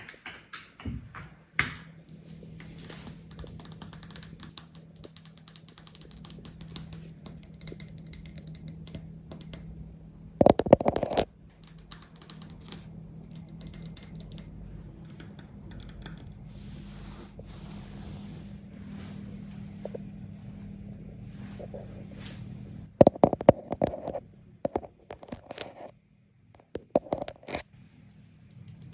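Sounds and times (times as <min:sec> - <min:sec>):
steady low hum: 0:01.8 - 0:24.7
tapping and scratching on a lens: 0:02.6 - 0:08.7, 0:10.4 - 0:12.8, 0:23.0 - 0:26.0, 0:26.6 - 0:27.7.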